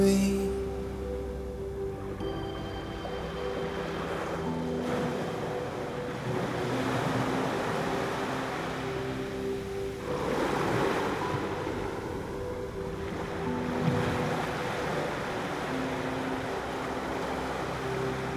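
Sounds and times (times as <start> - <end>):
ocean waves: 0.0 - 18.3.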